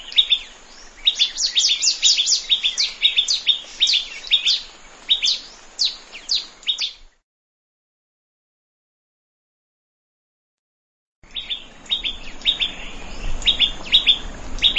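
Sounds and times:
plain prinia chirping in a rice field: 0:00.0 - 0:07.2, 0:11.2 - 0:14.7.

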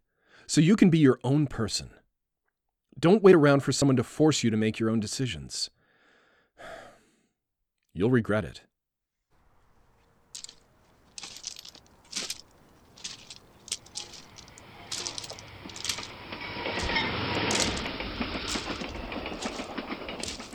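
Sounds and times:
speech: 0:00.5 - 0:02.0, 0:03.0 - 0:05.8, 0:08.0 - 0:08.7
train passing on railroad tracks: 0:09.6 - 0:20.5.

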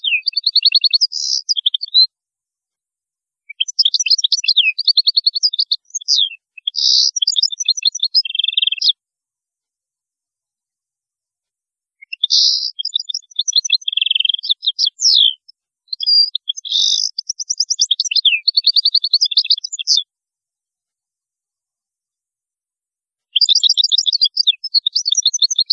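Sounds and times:
European goldfinch twittering song: 0:00.0 - 0:02.1, 0:03.5 - 0:09.0, 0:12.0 - 0:20.0, 0:23.4 - 0:25.7.

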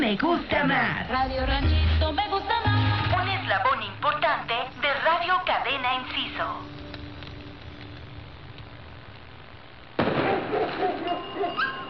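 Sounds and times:
speech: 0:00.0 - 0:04.5, 0:05.2 - 0:06.8
low steady hiss with faint tones: 0:00.0 - 0:11.8
dense crackling pops: 0:04.1 - 0:11.2
fireworks and firecrackers exploding: 0:06.6 - 0:11.8.

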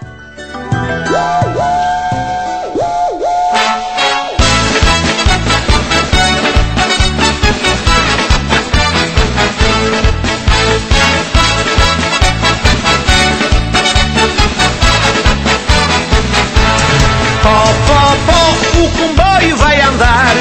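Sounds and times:
steady driving musical beat: 0:00.0 - 0:20.3
steam train whistle: 0:01.3 - 0:04.6.

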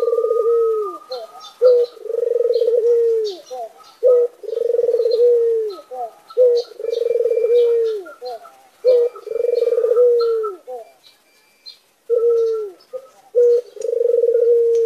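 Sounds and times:
white Barbary dove cooing: 0:00.0 - 0:11.4, 0:12.0 - 0:14.8.

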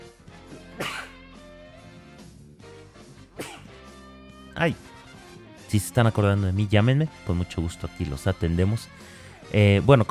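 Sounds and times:
person sneezing: 0:00.7 - 0:01.2, 0:03.4 - 0:03.8
speech: 0:04.6 - 0:04.9, 0:05.7 - 0:10.0.

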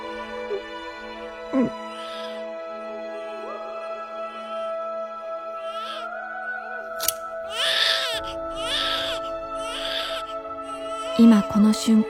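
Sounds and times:
steady tonal hum: 0:00.0 - 0:12.0
speech: 0:01.5 - 0:01.8, 0:11.2 - 0:12.0
newborn baby crying: 0:01.6 - 0:02.4, 0:05.6 - 0:06.1, 0:07.4 - 0:11.8
sharp click: 0:07.0 - 0:07.3.

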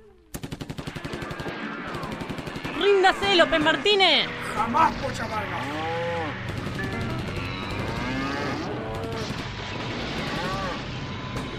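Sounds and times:
shotgun fire sound effect: 0:00.3 - 0:03.9, 0:06.3 - 0:11.5
speech: 0:02.8 - 0:06.0.

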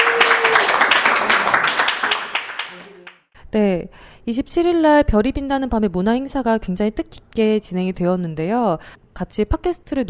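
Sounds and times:
audience applause at a gathering after a rousing speech: 0:00.0 - 0:03.2
speech: 0:03.5 - 0:10.0.

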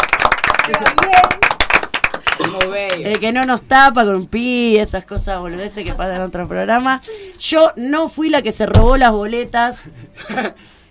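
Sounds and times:
clapping for the studio operator on a talk program: 0:00.0 - 0:03.6
speech: 0:00.7 - 0:01.5, 0:02.4 - 0:10.8.

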